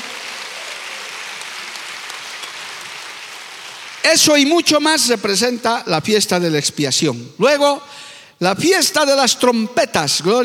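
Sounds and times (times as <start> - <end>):
audience applause: 0.0 - 4.3
speech: 4.0 - 10.4.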